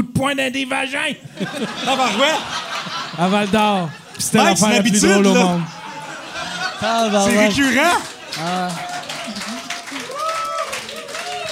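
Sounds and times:
speech: 0.0 - 5.8, 6.8 - 8.9
laughter: 1.2 - 11.5
voices shouting and talking loudly: 1.7 - 11.5
audience applause: 4.4 - 11.5.

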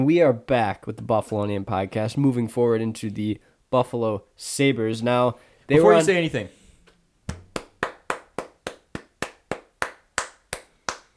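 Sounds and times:
speech: 0.0 - 6.6
person clapping slowly: 7.3 - 11.1.

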